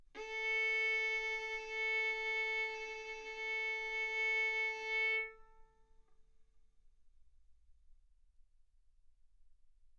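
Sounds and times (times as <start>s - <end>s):
violin bowed arco notes: 0.2s - 5.8s.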